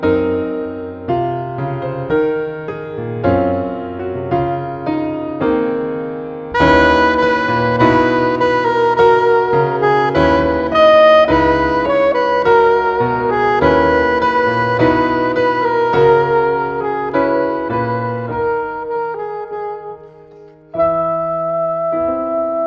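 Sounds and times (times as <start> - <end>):
piano: 0.0 - 22.6
soprano saxophone: 6.5 - 22.6.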